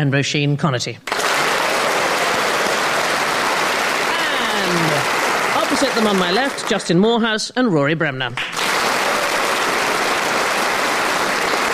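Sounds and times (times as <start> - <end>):
speech: 0.0 - 1.1, 5.9 - 8.6
audience applause welcoming panellists onto a panel game show: 1.1 - 7.0, 8.4 - 11.7.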